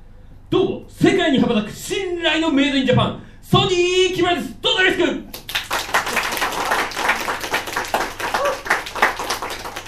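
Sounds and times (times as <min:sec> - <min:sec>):
speech: 0:00.9 - 0:05.3
crowd applauding after a self-introduction: 0:05.4 - 0:09.8.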